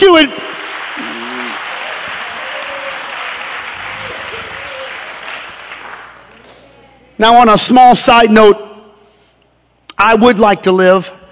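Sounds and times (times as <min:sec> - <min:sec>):
speech: 0:00.0 - 0:01.2, 0:07.2 - 0:08.6, 0:10.0 - 0:11.2
audience clapping hands: 0:00.0 - 0:06.8.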